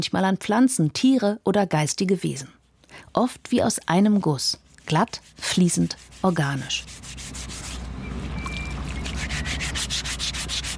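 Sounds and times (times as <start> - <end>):
speech: 0.0 - 7.2
low constant hum: 2.4 - 10.7
file rasping over stone sculpture: 5.2 - 7.8, 9.1 - 10.7.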